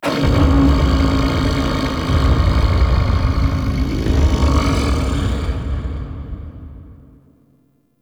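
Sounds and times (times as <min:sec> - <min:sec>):
shaking lab rumble: 0:00.0 - 0:07.2.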